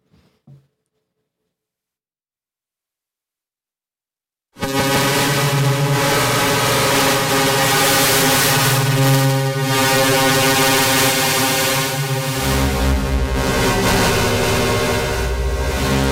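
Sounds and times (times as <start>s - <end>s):
steady synthesizer square wave tone: 4.6s - 16.1s.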